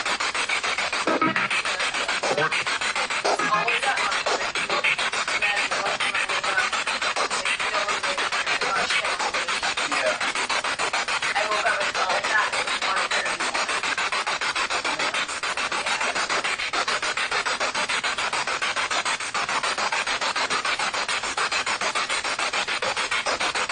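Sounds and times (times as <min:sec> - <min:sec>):
spirit box radio sweep in a living room: 0:00.0 - 0:23.6.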